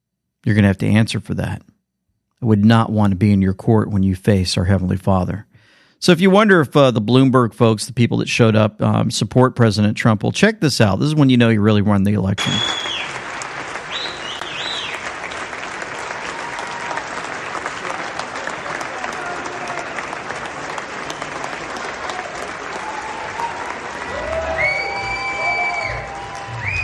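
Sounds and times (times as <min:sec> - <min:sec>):
speech: 0:00.4 - 0:01.7, 0:02.4 - 0:12.9
audience applause at a Bloomberg event: 0:12.4 - 0:26.8
crowd cheering and whooping: 0:12.6 - 0:26.8.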